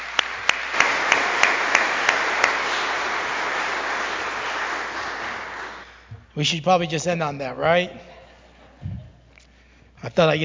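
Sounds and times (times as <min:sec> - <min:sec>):
audience applause: 0:00.0 - 0:06.1
speech: 0:06.4 - 0:08.1, 0:10.0 - 0:10.4
laughter: 0:08.0 - 0:09.3.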